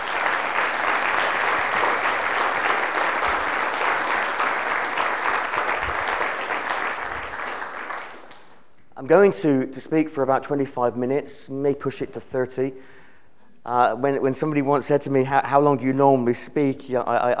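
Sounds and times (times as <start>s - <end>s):
audience applause: 0.0s - 8.5s
speech: 9.1s - 13.0s, 13.6s - 17.3s.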